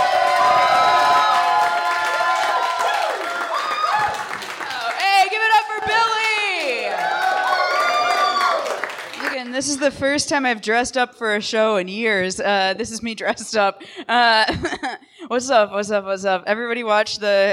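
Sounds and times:
audience applause: 0.0 - 9.4
speech: 9.6 - 17.5.

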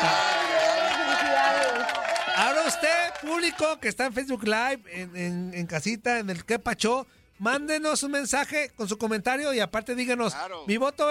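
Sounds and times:
audience applause: 0.0 - 3.7
speech: 3.2 - 11.1.

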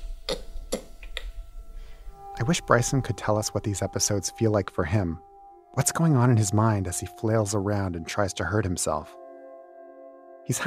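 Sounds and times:
mouth clicking: 0.0 - 1.4
speech: 2.4 - 9.2, 10.4 - 10.6.

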